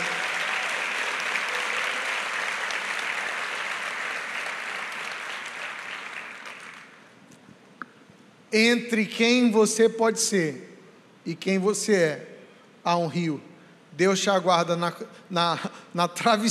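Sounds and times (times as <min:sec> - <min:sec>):
sustained crowd applause: 0:00.0 - 0:07.1
speech: 0:08.5 - 0:16.4.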